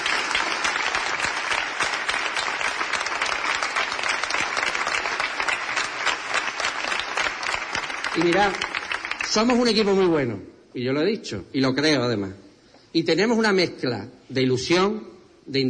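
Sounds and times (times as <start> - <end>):
strong audience applause: 0.0 - 10.2
speech: 8.2 - 8.7, 9.3 - 15.6.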